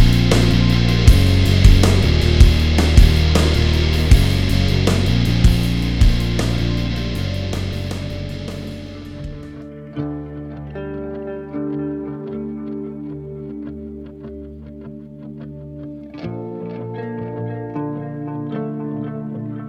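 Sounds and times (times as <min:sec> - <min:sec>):
drum kit loop: 0:00.0 - 0:09.6.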